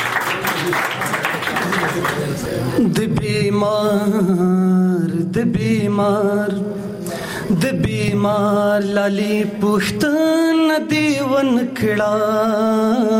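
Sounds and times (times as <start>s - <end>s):
audience clapping for a poet at a poetry gathering: 0.0s - 2.7s
speech: 0.6s - 1.0s, 2.0s - 13.1s.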